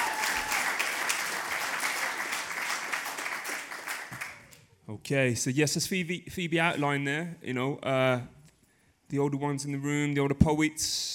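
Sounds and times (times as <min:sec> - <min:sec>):
audience applause: 0:00.0 - 0:04.6
speech: 0:04.9 - 0:08.4, 0:09.1 - 0:11.1.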